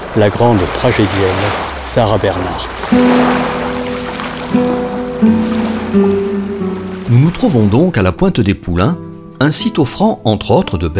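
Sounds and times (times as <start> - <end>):
ocean surf roaring at Pointe des Poulains: 0.0 - 8.1
speech: 0.2 - 3.5, 6.0 - 6.2, 7.1 - 10.9.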